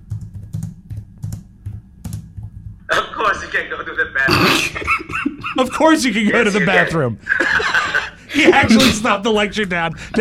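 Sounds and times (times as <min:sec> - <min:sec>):
typing on a computer keyboard: 0:00.0 - 0:02.8
speech: 0:03.2 - 0:10.1
laughter: 0:04.6 - 0:09.0.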